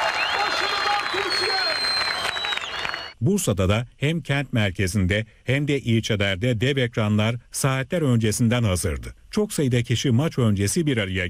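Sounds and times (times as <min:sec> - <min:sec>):
football fans cheering and clapping at a giant outdoor screen in Konak Square, İzmir: 0:00.0 - 0:03.2
speech: 0:03.2 - 0:11.2.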